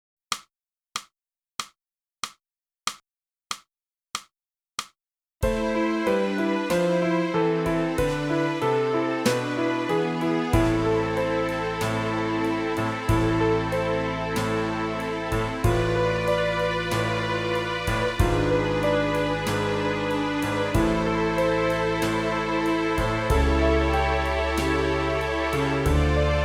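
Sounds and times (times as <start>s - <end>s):
flute: 5.5s - 26.4s.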